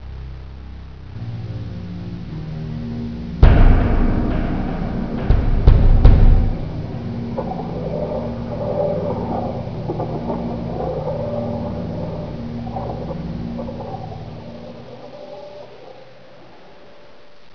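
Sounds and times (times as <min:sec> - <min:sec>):
song: 0:03.4 - 0:14.8.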